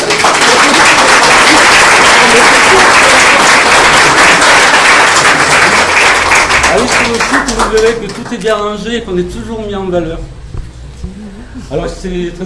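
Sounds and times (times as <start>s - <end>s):
audience applause: 0.0s - 8.5s
speech: 7.7s - 10.4s, 11.7s - 12.4s.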